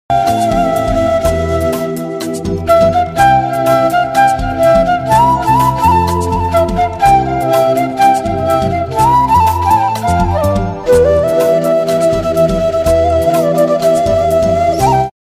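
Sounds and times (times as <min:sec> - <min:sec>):
love background flute instrumental music: 0:00.1 - 0:15.2.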